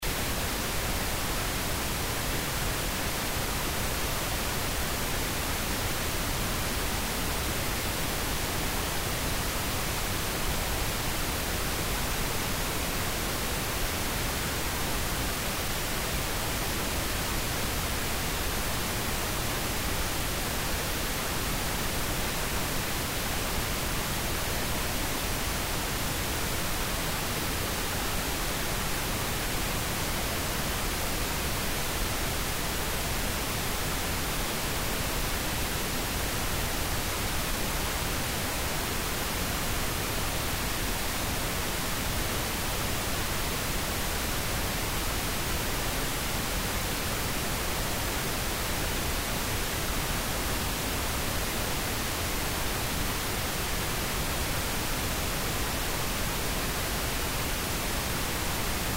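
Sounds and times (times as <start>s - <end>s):
pink noise: 0.0s - 58.9s.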